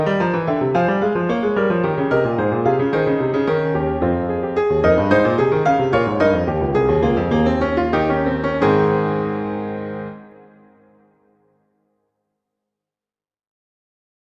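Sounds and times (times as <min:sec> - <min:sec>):
fugue: 0:00.0 - 0:10.8.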